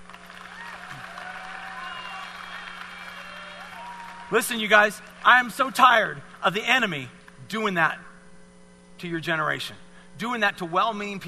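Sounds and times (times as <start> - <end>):
audience clapping: 0.0 - 5.5
speech: 4.3 - 8.1, 9.0 - 11.2.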